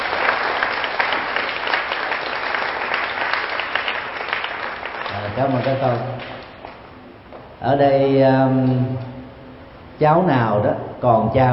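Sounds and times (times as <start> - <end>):
loud applause from a large group: 0.0 - 6.5
speech: 5.4 - 6.4, 7.6 - 9.1, 10.0 - 11.5.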